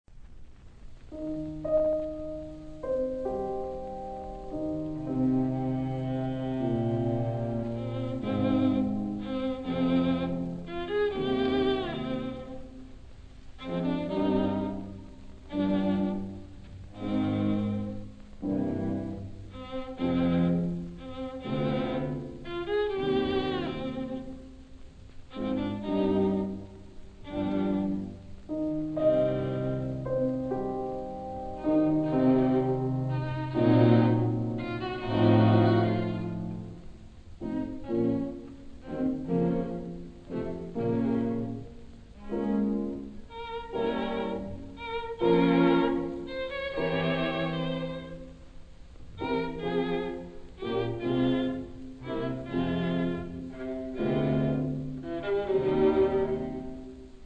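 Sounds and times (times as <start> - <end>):
piano quintet playing: 1.1 - 57.2.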